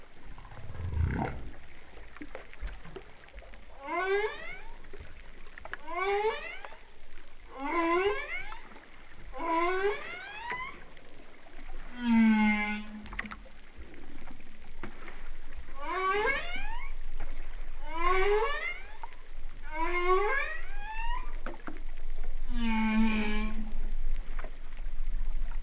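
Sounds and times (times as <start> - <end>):
humpback whale song: 0.1 - 2.0, 3.7 - 5.2, 5.8 - 14.1, 15.5 - 24.3.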